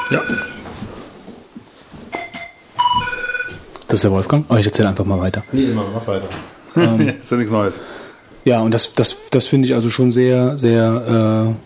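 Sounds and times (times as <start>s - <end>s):
telephone ringing: 0.0s - 0.7s, 2.2s - 3.6s
speech: 0.1s - 0.5s, 3.9s - 11.6s
laughter: 5.6s - 7.8s.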